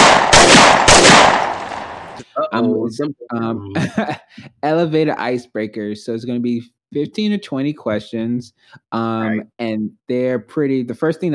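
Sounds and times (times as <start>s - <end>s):
gunshot sound effect for the podcast segment Shots Fired: 0.0s - 2.2s
laughter: 2.2s - 5.8s, 8.8s - 9.4s
speech: 2.5s - 11.3s.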